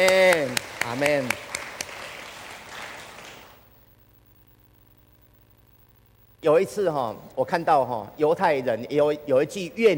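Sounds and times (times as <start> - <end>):
speech: 0.0 - 1.5, 6.4 - 9.9
audience clapping: 0.0 - 3.7.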